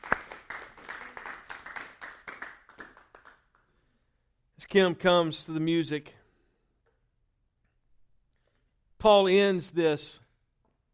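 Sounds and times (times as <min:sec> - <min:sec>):
audience hand clapping: 0:00.0 - 0:03.8
speech: 0:04.7 - 0:06.2, 0:09.0 - 0:10.2.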